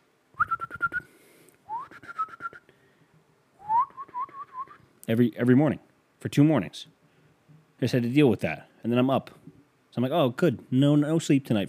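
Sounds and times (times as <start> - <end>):
person whistling imitation of morning birdsong: 0.4 - 1.1, 1.7 - 2.7, 3.6 - 4.8
speech: 5.1 - 7.0, 7.8 - 11.6.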